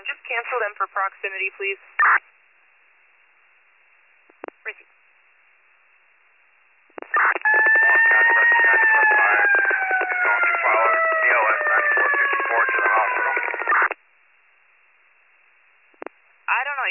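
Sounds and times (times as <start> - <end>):
speech: 0.3 - 2.3, 4.7 - 4.9
emergency vehicle sirens: 7.2 - 14.0.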